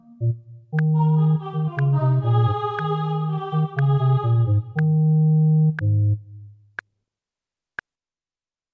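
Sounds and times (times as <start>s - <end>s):
choral anthem: 0.0s - 5.2s.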